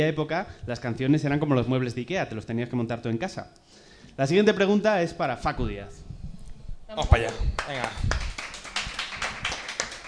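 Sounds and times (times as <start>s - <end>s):
speech: 0.0s - 6.1s, 6.9s - 8.3s
audience clapping: 7.1s - 10.0s.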